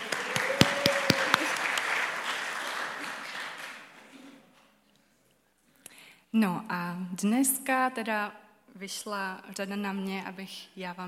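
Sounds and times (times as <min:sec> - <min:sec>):
audience applause: 0:00.0 - 0:04.2
speech: 0:06.3 - 0:11.0.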